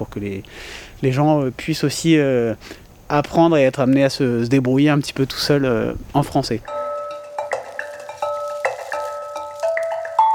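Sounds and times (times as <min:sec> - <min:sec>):
speech: 0:00.0 - 0:06.8
school bells ringing end of recess: 0:06.7 - 0:10.3.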